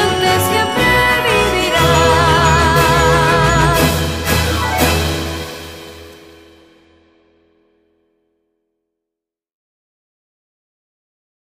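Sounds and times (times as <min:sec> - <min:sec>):
anthem music: 0:00.0 - 0:07.1.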